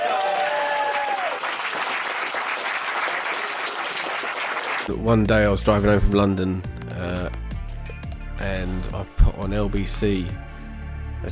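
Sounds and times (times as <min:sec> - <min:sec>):
audience applause: 0:00.0 - 0:04.9
speech: 0:04.9 - 0:07.2, 0:08.6 - 0:10.5.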